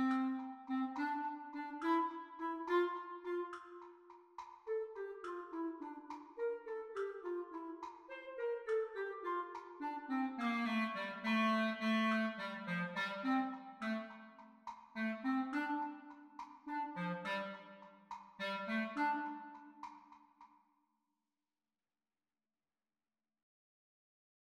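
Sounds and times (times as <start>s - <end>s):
clarinet duet played at practice speed: 0.0s - 4.0s, 4.6s - 14.4s, 15.0s - 19.9s.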